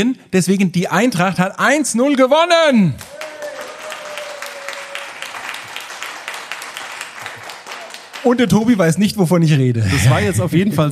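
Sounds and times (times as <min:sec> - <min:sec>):
speech: 0:00.0 - 0:03.2, 0:08.2 - 0:10.9
audience clapping: 0:03.0 - 0:08.8.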